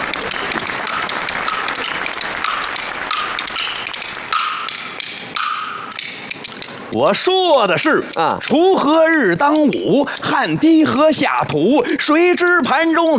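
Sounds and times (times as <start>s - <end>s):
classroom applause: 0.0s - 5.0s
speech: 6.9s - 13.1s.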